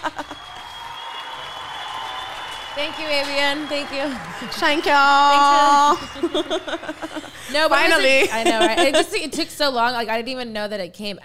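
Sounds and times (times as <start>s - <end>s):
laughter: 0.0s - 0.6s, 4.1s - 9.4s
round of applause: 0.0s - 7.8s
speech: 2.8s - 11.2s.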